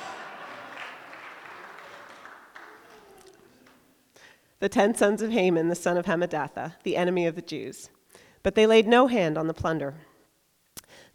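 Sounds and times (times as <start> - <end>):
audience clapping: 0.0 - 3.9
speech: 4.6 - 10.1.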